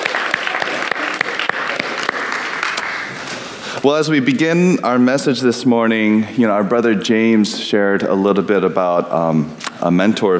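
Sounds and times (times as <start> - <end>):
audience applause: 0.0 - 3.3
speech: 3.8 - 10.3.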